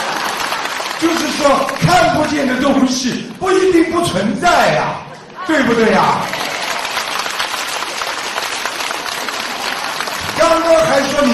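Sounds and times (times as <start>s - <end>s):
audience applause: 0.0s - 2.6s, 6.1s - 11.3s
speech: 1.1s - 6.4s, 10.6s - 11.3s.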